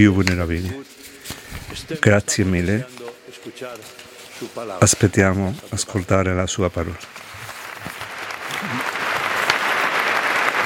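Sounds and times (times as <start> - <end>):
speech: 0.0 - 1.0, 1.7 - 8.0, 8.6 - 9.0
large crowd applause: 6.9 - 10.6.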